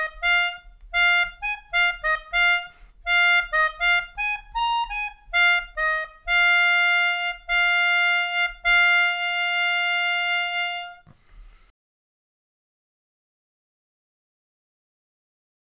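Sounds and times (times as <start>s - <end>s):
melodica: 0.0s - 11.1s.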